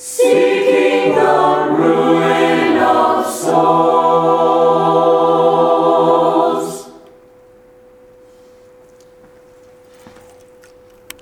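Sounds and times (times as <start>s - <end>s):
chant singing: 0.0s - 7.2s.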